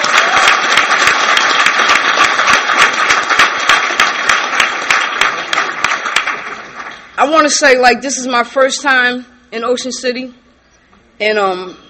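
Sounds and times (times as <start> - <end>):
audience applause: 0.0 - 7.2
speech: 7.2 - 10.4, 11.2 - 11.8.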